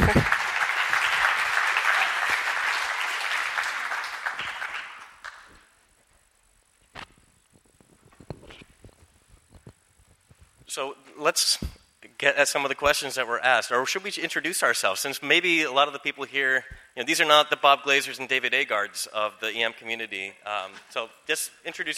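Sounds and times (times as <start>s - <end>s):
audience applause: 0.0s - 5.6s
speech: 10.8s - 21.9s.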